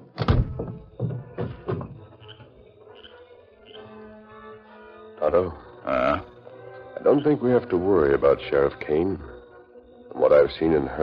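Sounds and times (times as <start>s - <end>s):
door slamming shut: 0.2s - 2.0s
speech: 5.3s - 6.3s, 7.0s - 9.3s, 10.2s - 11.0s.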